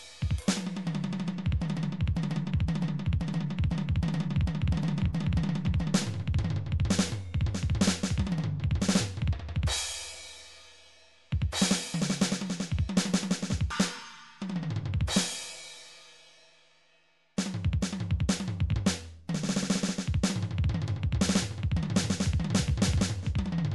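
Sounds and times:
midi drums: 0.0 - 10.6, 11.3 - 15.8, 17.4 - 23.7.

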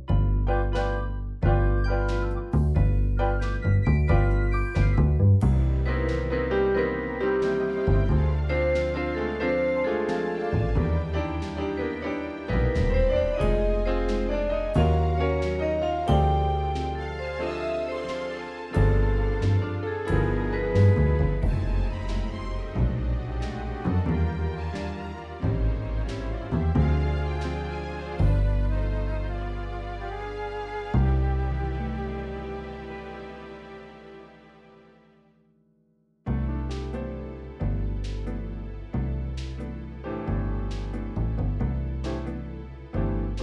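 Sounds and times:
MIDI orchestral ballad: 0.2 - 35.0, 36.3 - 43.4.

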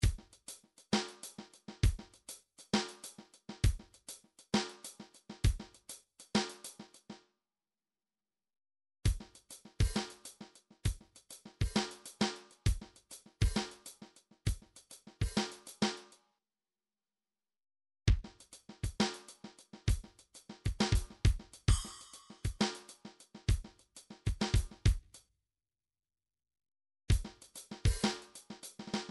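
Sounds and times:
midi drums: 0.0 - 7.1, 9.1 - 16.1, 18.1 - 25.2, 27.1 - 29.0.

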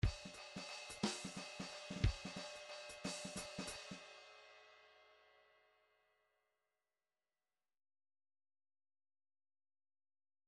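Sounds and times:
rhythmic groove in three-four time: 0.0 - 4.0.

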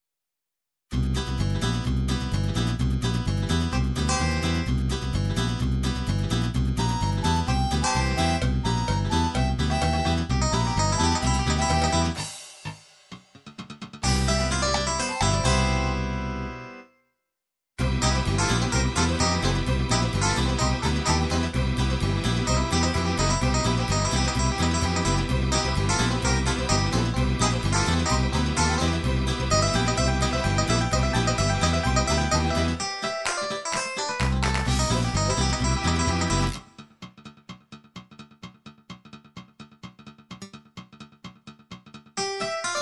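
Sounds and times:
4/4 MIDI blues music: 1.0 - 12.4, 13.3 - 16.7, 17.8 - 42.7.

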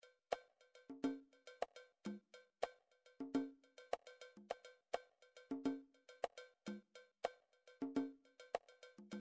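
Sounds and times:
drums: 0.0 - 9.2
conga: 0.3 - 9.2.

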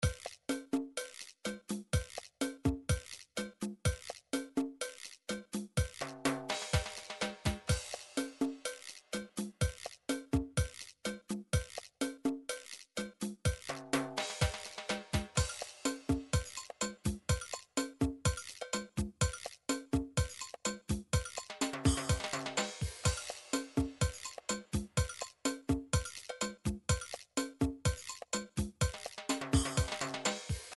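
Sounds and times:
MIDI drum cha-cha beat: 0.0 - 30.7.

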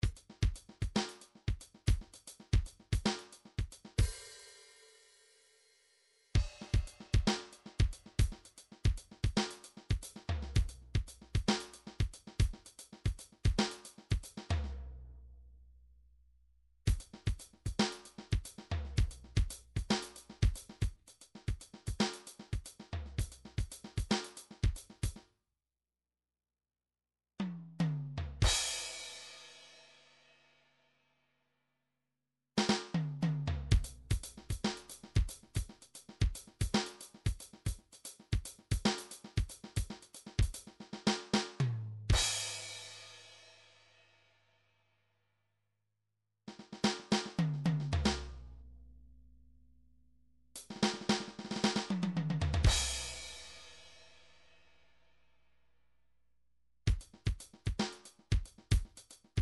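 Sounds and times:
midi drums: 0.0 - 4.6, 6.4 - 14.8, 16.9 - 25.2, 27.4 - 29.2, 32.6 - 43.0, 46.5 - 48.4, 50.6 - 53.8, 56.9 - 59.4.

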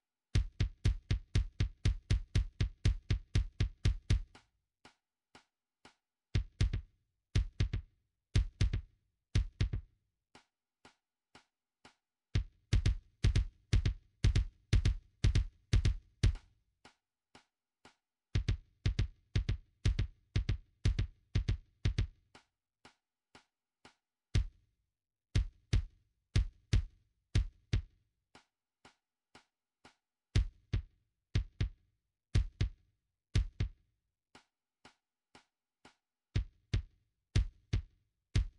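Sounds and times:
kick drum: 0.4 - 4.4, 6.4 - 9.9, 12.4 - 16.4, 18.4 - 22.2, 24.4 - 24.6, 25.4 - 27.9, 30.4 - 31.8, 32.4 - 32.8, 33.4 - 33.8, 36.4 - 38.5.

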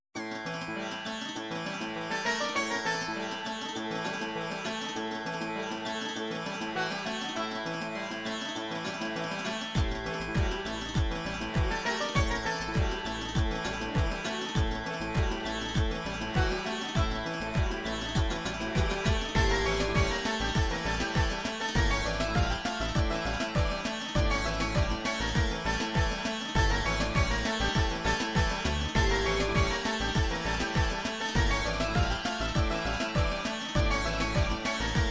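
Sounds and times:
Russian bhangra MIDI music: 0.2 - 35.0.

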